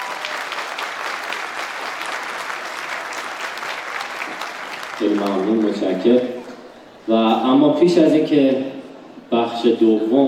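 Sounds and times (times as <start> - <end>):
audience applause: 0.0 - 6.7
speech: 5.0 - 6.4, 7.1 - 8.7, 9.5 - 10.2.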